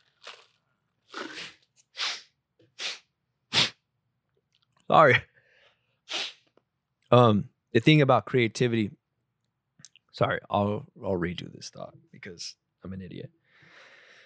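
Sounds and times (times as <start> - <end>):
nasal squeaking while breathing through nose: 1.2 - 3.8, 6.1 - 6.4
speech: 4.9 - 5.3, 7.1 - 9.0, 10.2 - 13.4.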